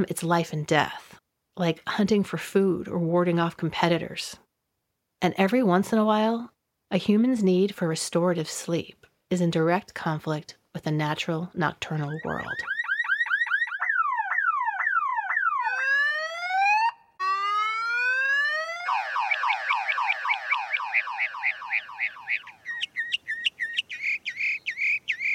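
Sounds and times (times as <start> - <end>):
speech: 0.0 - 1.0, 1.6 - 4.4, 5.2 - 12.8
mockingbird mimicking a car alarm: 11.9 - 25.3.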